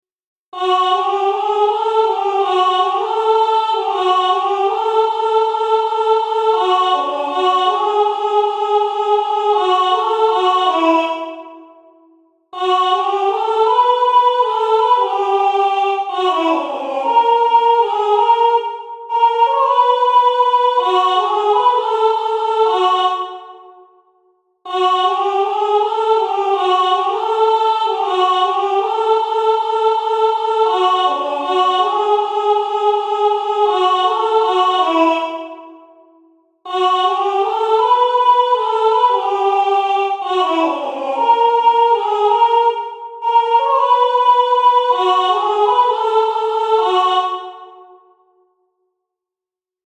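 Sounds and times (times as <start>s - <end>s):
soprano singing: 0.6s - 11.6s, 12.6s - 23.6s, 24.7s - 35.7s, 36.7s - 47.9s.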